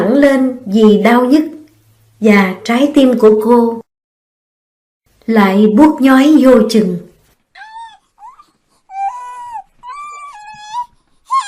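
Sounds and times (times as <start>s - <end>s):
speech: 0.2s - 1.6s, 2.2s - 3.8s, 5.3s - 7.1s
baby crying loudly: 7.6s - 11.4s.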